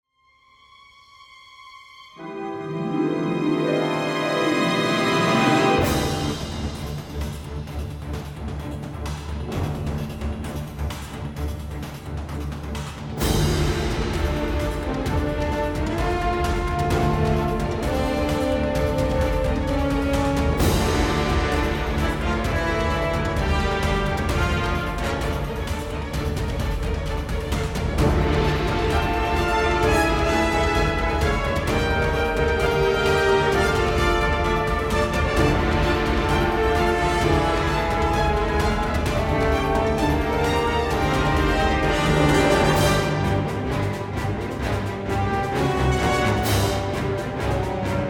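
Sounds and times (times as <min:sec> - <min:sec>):
field background music: 0:00.2 - 0:48.0.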